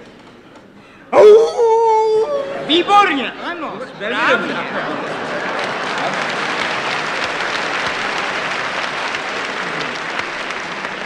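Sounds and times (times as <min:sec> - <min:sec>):
man imitating a jackal howl: 0:01.1 - 0:02.7
laughter: 0:02.1 - 0:10.4
speech: 0:02.7 - 0:05.2.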